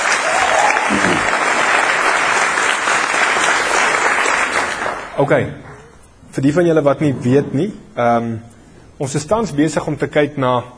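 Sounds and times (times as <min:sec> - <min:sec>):
crowd applauding: 0:00.0 - 0:05.2
speech: 0:05.2 - 0:05.7, 0:06.3 - 0:10.7.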